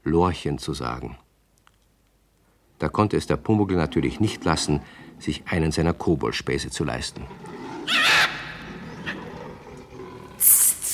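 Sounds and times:
speech: 0:00.1 - 0:01.2, 0:02.8 - 0:08.4
parrot screeching: 0:07.8 - 0:08.7.

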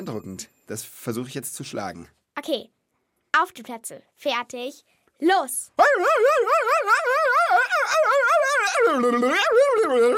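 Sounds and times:
speech: 0:00.0 - 0:02.8, 0:03.4 - 0:10.1
person imitating dog barking: 0:05.8 - 0:10.1.

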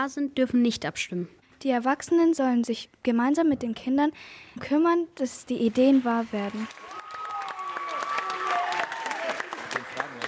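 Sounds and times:
speech: 0:00.0 - 0:06.9
group clapping to welcome: 0:05.7 - 0:10.2.

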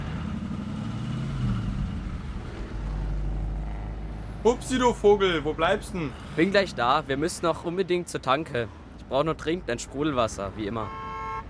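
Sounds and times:
car driving: 0:00.0 - 0:07.9
speech: 0:04.4 - 0:11.0.

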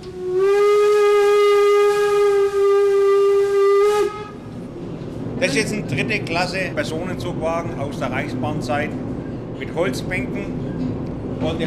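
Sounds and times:
class 64 steam locomotive whistle: 0:00.0 - 0:04.6
speech: 0:05.6 - 0:10.6, 0:11.4 - 0:11.6.

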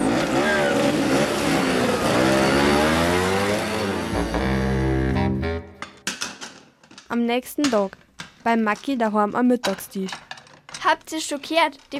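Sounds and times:
moped engine revving: 0:00.0 - 0:05.8
speech: 0:07.1 - 0:10.2, 0:10.8 - 0:11.9.

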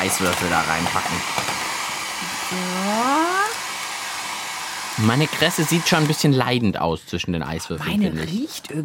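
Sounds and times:
speech: 0:00.0 - 0:01.6, 0:02.2 - 0:03.6, 0:05.0 - 0:08.8
hair dryer blowing on low setting: 0:00.0 - 0:06.6.

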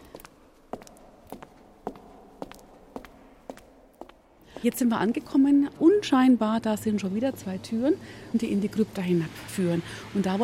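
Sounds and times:
low hushed background: 0:00.0 - 0:04.8
heel footsteps echoing in a dark church entrance: 0:00.0 - 0:05.2
speech: 0:04.6 - 0:10.4.

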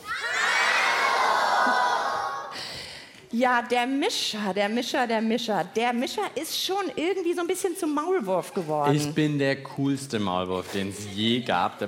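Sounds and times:
live audience cheering and shouting: 0:00.0 - 0:02.6
speech: 0:03.3 - 0:11.8.

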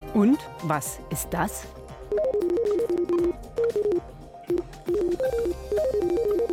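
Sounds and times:
speech: 0:00.2 - 0:04.1
pig brain activity converted to sound: 0:02.1 - 0:06.5.

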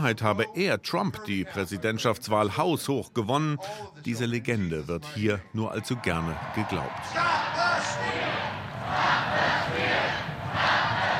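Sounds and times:
speech: 0:00.0 - 0:09.8
crowd chanting a political slogan in front of the Capitol: 0:05.8 - 0:11.1.

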